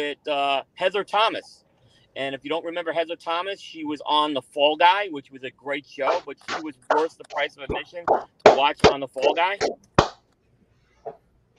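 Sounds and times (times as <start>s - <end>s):
speech: 0.0s - 1.6s, 2.2s - 9.9s
big hand clap: 8.1s - 10.2s.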